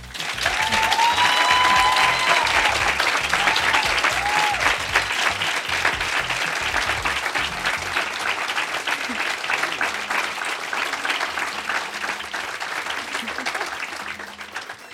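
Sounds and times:
laughter: 0:00.0 - 0:14.9
long audience applause: 0:00.0 - 0:14.9
whistles and whoops: 0:00.2 - 0:05.6.

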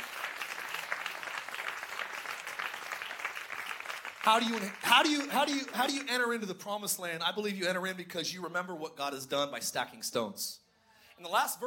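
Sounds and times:
audience clapping hands: 0:00.0 - 0:06.5
speech: 0:04.2 - 0:10.6, 0:11.2 - 0:11.6.

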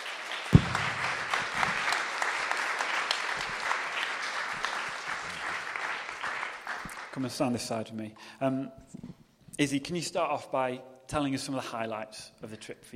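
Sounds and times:
round of applause: 0:00.0 - 0:07.2
speech: 0:07.2 - 0:12.9.

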